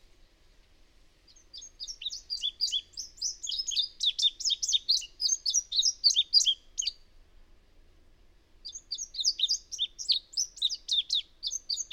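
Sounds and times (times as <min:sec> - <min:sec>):
bird song: 0:01.3 - 0:07.1, 0:08.6 - 0:11.9.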